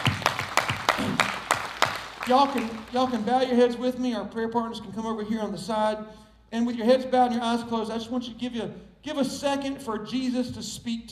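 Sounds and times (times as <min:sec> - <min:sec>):
audience hand clapping: 0:00.0 - 0:03.6
speech: 0:02.3 - 0:11.1.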